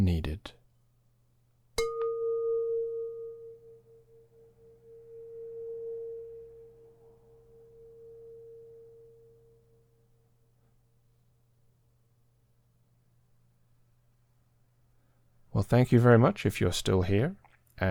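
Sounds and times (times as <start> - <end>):
speech: 0.0 - 0.6, 15.6 - 17.9
metal rice cooker bowl struck like a gong: 1.8 - 9.3.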